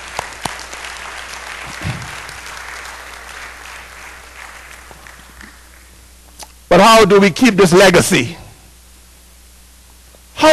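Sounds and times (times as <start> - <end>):
audience applause: 0.0 - 6.0
speech: 6.8 - 8.4.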